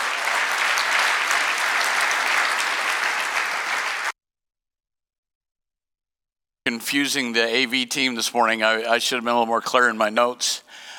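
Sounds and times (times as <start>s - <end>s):
church congregation clapping hands during a morning service: 0.0s - 4.2s
speech: 6.7s - 10.9s.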